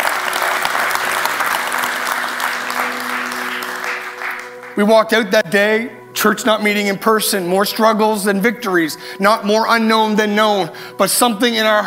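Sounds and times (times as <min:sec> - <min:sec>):
audience applause: 0:00.0 - 0:04.8
speech: 0:04.8 - 0:11.8.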